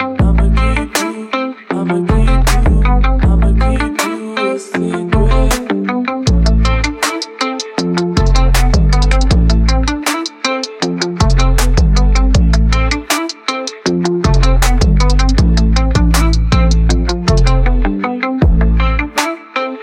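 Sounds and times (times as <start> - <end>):
trap beat: 0.2 - 1.2, 2.1 - 4.4, 5.1 - 19.6.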